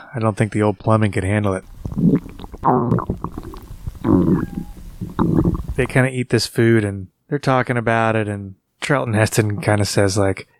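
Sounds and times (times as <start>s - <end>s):
speech: 0.1s - 4.6s, 5.2s - 10.5s
stomach rumbling and gurgling from gas cramps: 1.6s - 6.0s.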